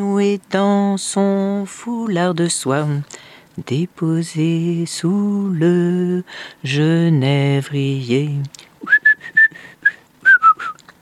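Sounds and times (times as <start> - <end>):
speech: 0.0 - 8.7
person whistling birdlike tune: 8.8 - 10.8.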